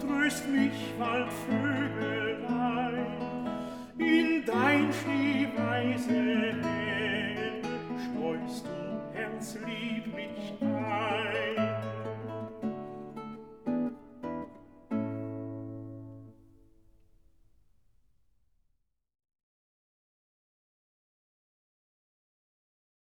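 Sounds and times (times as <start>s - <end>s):
person singing: 0.0s - 12.5s
lute: 0.0s - 16.0s.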